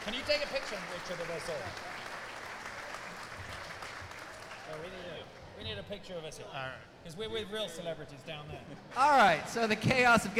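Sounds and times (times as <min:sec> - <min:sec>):
audience applause at a live animal show at Road America: 0:00.0 - 0:05.2
speech: 0:00.1 - 0:02.0, 0:04.7 - 0:10.3.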